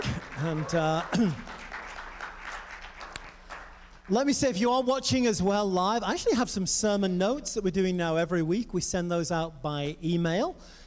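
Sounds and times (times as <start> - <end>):
church audience applause during a service about the End Times: 0.0 - 4.1
speech: 0.4 - 1.6, 4.1 - 10.8.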